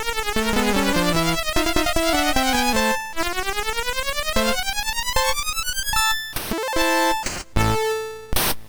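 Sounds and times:
chiptune melody on a MOS6581R2 chip: 0:00.0 - 0:08.4.

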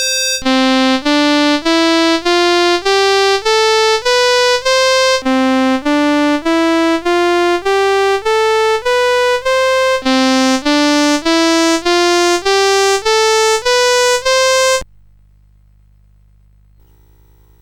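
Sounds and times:
synthesizer filter mode demonstration: 0:00.0 - 0:14.8.

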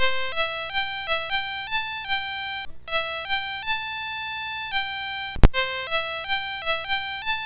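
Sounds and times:
Commodore MOS6581R3 chip music: 0:00.0 - 0:07.4.

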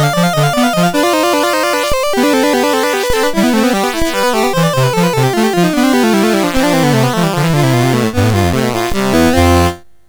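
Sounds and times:
chiptune piece on a MOS6581R4 sound chip: 0:00.0 - 0:09.8.

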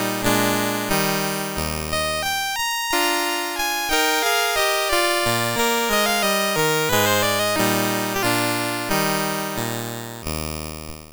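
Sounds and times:
andantino piece played on a MOS6581R3 sound chip: 0:00.0 - 0:10.4.

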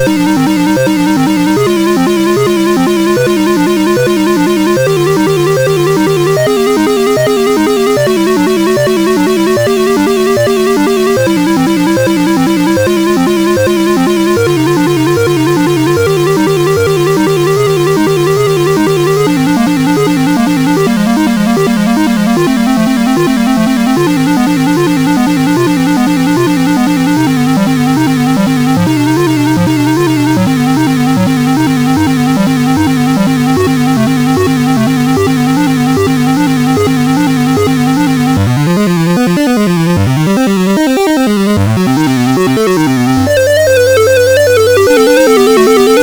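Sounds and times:
prelude on MOS6581R4 chip: 0:00.0 - 0:46.0.

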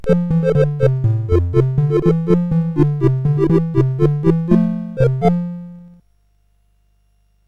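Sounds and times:
SID chiptune music on a CSG8580R5 chip: 0:00.0 - 0:06.0.

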